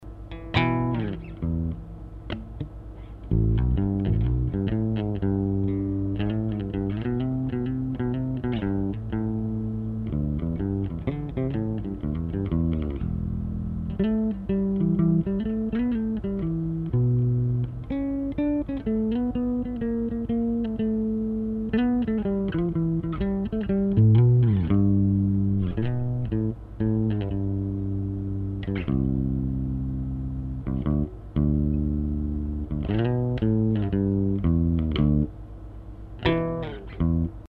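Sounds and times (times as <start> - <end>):
bass: 0.0 - 37.4.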